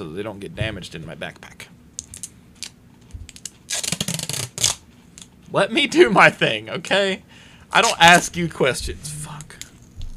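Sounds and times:
speech: 0.0s - 1.8s, 5.5s - 9.6s
adhesive tape ripping off a roll onto a book box: 2.6s - 4.8s.

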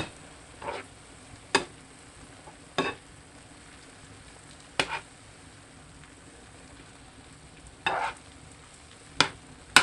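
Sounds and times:
utensil scraping while stirring a lightly salted vegetable in a pan: 0.0s - 0.9s, 4.8s - 5.1s, 7.8s - 8.2s
faint steady sizzle of vegetable sautéing in a pan: 0.0s - 9.8s.

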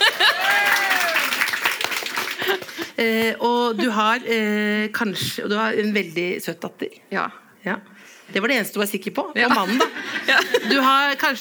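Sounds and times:
laughter: 0.0s - 1.4s, 9.5s - 10.9s
audience applause: 0.0s - 2.9s
voice whooping: 0.2s - 1.4s
speech: 3.0s - 11.3s.

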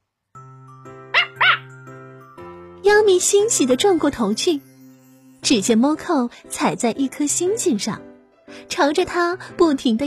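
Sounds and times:
dog barking: 1.2s - 1.7s
speech: 2.8s - 4.7s, 5.4s - 10.0s.

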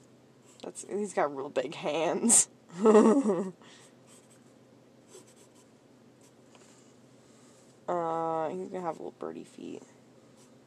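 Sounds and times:
speech: 0.6s - 3.8s, 8.0s - 10.0s
pen drawing on paper: 5.1s - 6.4s.

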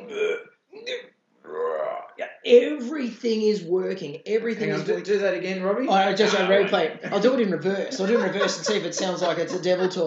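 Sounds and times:
person vocally imitating vomiting with guttural retching heaves: 0.0s - 2.4s, 6.0s - 7.2s
speech: 2.5s - 10.0s
laughter: 4.6s - 5.1s, 5.9s - 10.0s.

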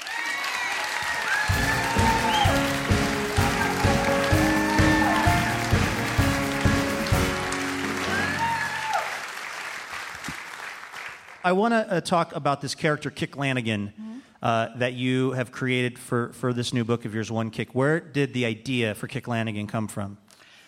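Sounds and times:
audience applause welcoming a guest author onto a live stage show: 0.0s - 11.4s
pitched music playing: 1.5s - 9.0s
speech: 11.4s - 20.2s.

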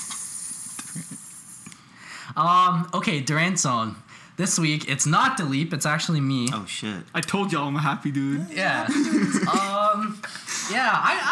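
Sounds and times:
airy hiss like a snake's: 0.0s - 1.7s
speech: 2.4s - 11.3s
laughter: 8.5s - 10.2s.

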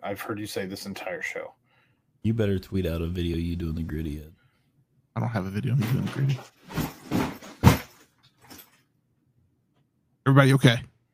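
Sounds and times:
speech: 0.1s - 1.6s, 2.2s - 4.4s, 5.2s - 6.9s, 10.3s - 10.9s
heavy baseball bag tumbling down stairs: 6.0s - 8.6s.

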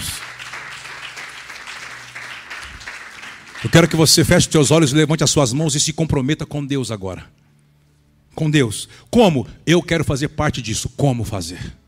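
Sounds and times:
audience applause: 0.0s - 4.3s
speech: 3.6s - 7.4s, 8.4s - 11.8s.

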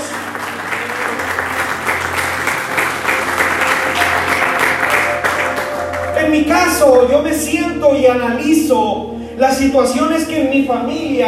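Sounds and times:
audience applauding loudly: 0.0s - 6.4s
speech: 6.3s - 11.2s.

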